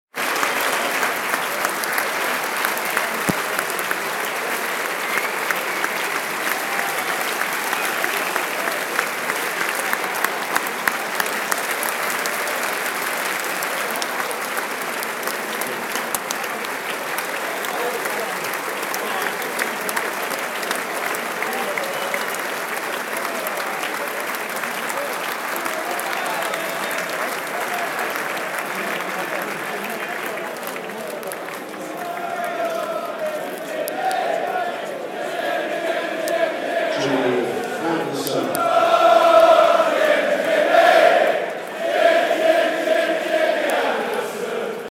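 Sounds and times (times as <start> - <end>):
crowd cheering: 0.1 - 44.8
crowd singing: 32.0 - 44.8.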